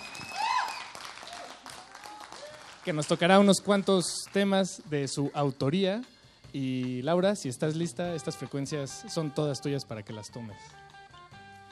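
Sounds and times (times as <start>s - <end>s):
audience applause for performer: 0.0s - 4.5s
speech: 2.8s - 10.9s.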